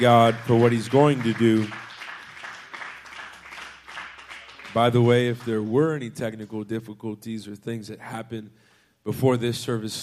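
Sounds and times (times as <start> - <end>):
speech: 0.0 - 1.8, 4.8 - 10.0
audience clapping: 0.0 - 6.7.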